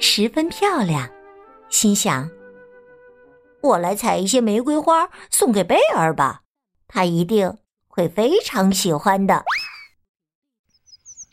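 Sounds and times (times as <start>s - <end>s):
speech: 0.2s - 2.4s, 3.6s - 9.6s
small bird chirping: 10.7s - 11.3s.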